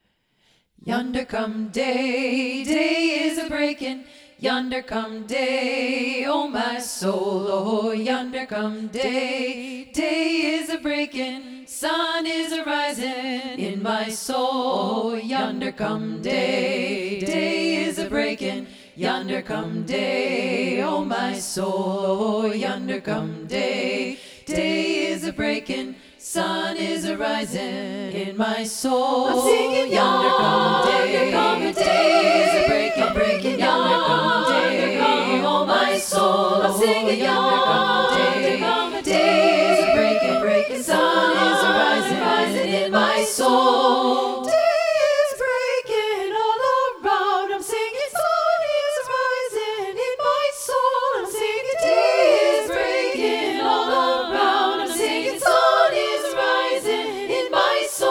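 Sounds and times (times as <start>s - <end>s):
SATB choir singing combined: 0.8s - 58.0s.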